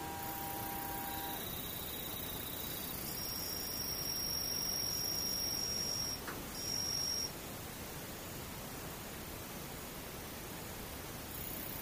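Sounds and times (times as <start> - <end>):
distant insects: 0.0 - 7.4, 11.3 - 11.8
steady soft hiss: 0.0 - 11.8.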